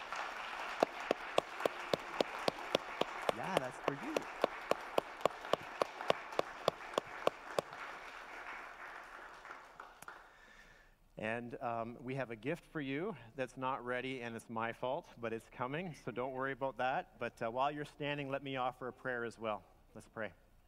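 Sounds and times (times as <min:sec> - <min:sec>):
audience clapping: 0:00.0 - 0:10.7
speech: 0:03.4 - 0:04.4, 0:11.2 - 0:20.4.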